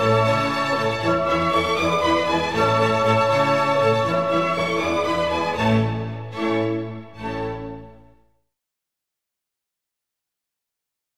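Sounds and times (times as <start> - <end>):
clarinet concerto with orchestra: 0.0 - 8.2.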